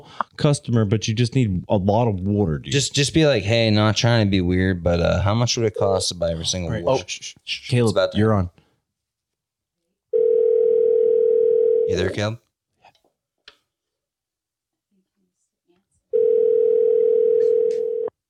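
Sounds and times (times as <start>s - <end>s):
speech: 0.0s - 8.6s, 11.9s - 12.4s
telephone dial tone after call drops: 10.2s - 11.8s, 16.2s - 18.1s.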